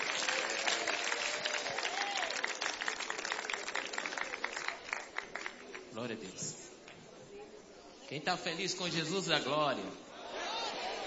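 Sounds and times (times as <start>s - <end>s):
faint voice or cheer: 0.0s - 2.6s
audience applause: 0.0s - 5.9s
speech: 6.0s - 6.6s, 8.1s - 10.1s.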